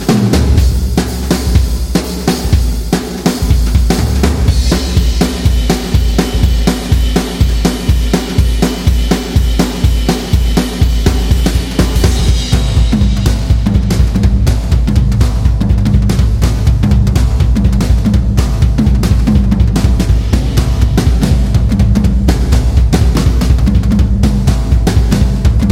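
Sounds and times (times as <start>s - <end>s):
jazz drums: 0.0s - 25.7s.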